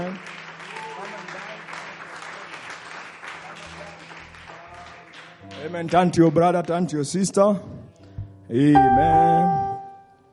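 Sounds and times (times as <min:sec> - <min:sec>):
audience hand clapping: 0:00.0 - 0:07.2
speech: 0:05.6 - 0:07.8, 0:08.5 - 0:09.6.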